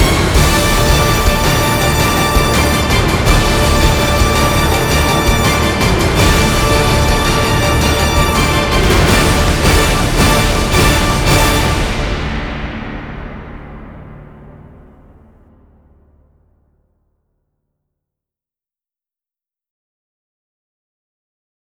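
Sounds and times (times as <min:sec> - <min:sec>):
orchestra playing: 0:00.0 - 0:15.1.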